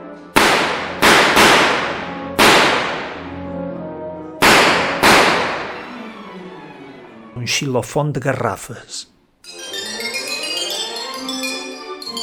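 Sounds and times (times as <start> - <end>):
noisy gun firing: 0.4 - 3.3, 4.4 - 5.9
speech: 7.4 - 9.6.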